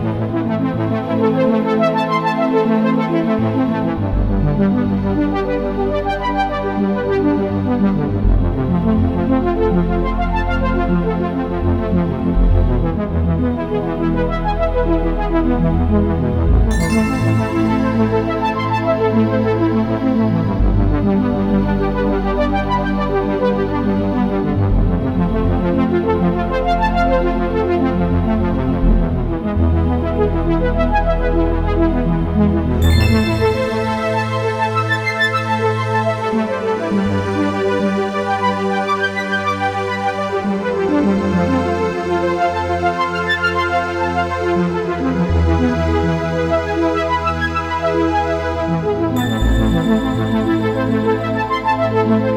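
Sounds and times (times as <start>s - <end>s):
mysterious fantasy music: 0.0s - 52.3s.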